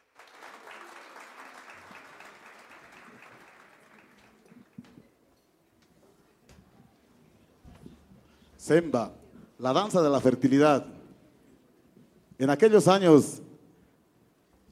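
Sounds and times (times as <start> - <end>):
audience applause: 0.0 - 4.9
speech: 8.6 - 11.0, 12.4 - 13.4.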